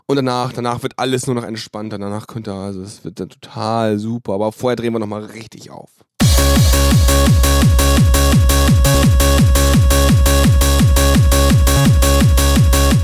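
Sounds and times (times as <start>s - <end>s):
speech: 0.1s - 10.6s
8-bit electronic track sounding like Eurodance: 6.2s - 13.0s.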